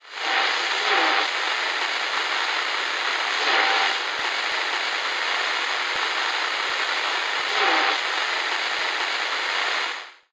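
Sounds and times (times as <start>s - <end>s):
radio noise: 0.0s - 9.8s.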